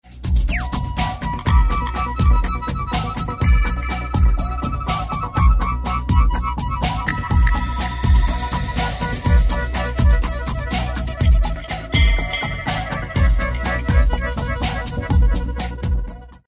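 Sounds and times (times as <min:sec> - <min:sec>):
bass: 0:00.0 - 0:16.4
flute: 0:00.3 - 0:16.4.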